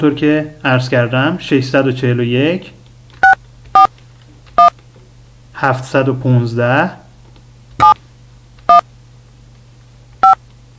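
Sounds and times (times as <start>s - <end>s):
speech: 0.0s - 2.8s, 5.6s - 7.0s
low steady hum: 0.0s - 10.7s
telephone keypad tones dialing a conference room number: 3.2s - 3.9s.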